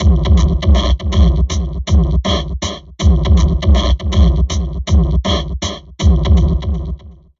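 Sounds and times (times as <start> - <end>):
heavily processed drum loop: 0.0 - 7.3.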